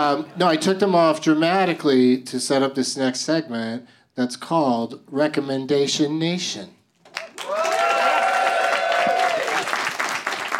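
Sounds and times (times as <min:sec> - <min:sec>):
speech: 0:00.0 - 0:06.8
audience applause: 0:07.1 - 0:10.5.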